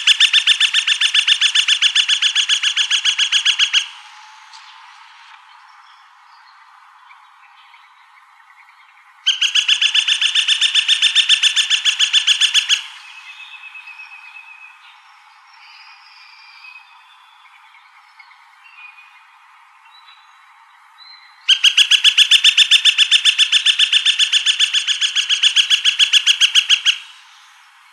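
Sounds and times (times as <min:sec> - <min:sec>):
Gilded Flicker woodpecker ringing call: 0:00.0 - 0:04.1, 0:09.3 - 0:14.2, 0:21.5 - 0:27.5.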